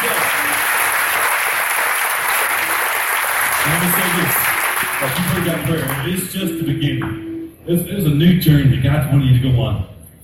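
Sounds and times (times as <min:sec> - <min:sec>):
crowd applause at a worship service: 0:00.0 - 0:06.3
speech: 0:05.0 - 0:09.9.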